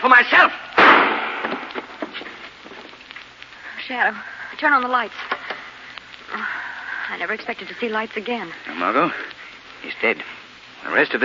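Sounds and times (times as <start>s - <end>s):
speech: 0.0s - 1.6s, 3.9s - 5.4s, 7.1s - 11.2s
gunshot in a radio drama: 0.8s - 2.1s.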